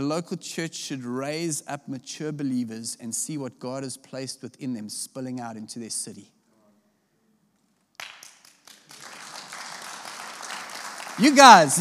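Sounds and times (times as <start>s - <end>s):
speech: 0.0s - 6.4s, 11.2s - 11.7s
audience clapping: 7.9s - 11.7s.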